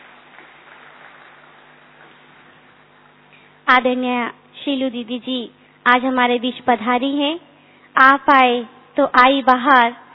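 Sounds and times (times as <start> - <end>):
audience clapping in welcome: 0.0 - 3.1
speech: 3.7 - 10.0.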